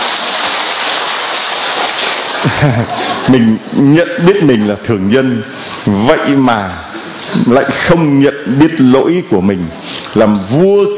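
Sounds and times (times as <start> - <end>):
audience applause: 0.0 - 3.3
laughter: 2.3 - 3.6
speech: 2.4 - 10.9.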